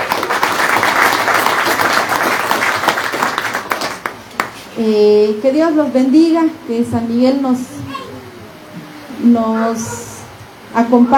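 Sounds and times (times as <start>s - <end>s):
audience applause: 0.0s - 4.6s
speech: 4.8s - 8.0s, 9.2s - 10.1s, 10.8s - 11.1s.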